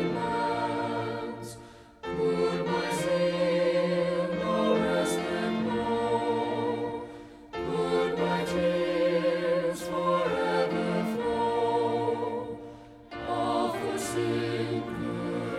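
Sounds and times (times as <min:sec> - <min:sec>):
music: 0:00.0 - 0:15.5.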